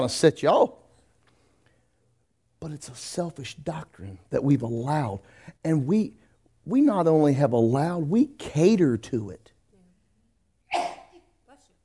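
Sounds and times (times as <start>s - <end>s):
speech: 0.0s - 0.8s, 2.6s - 9.5s
sneeze: 10.7s - 11.3s.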